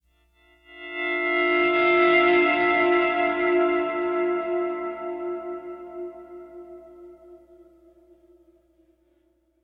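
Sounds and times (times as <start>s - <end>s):
pleasant guitar playing: 0.8s - 7.9s.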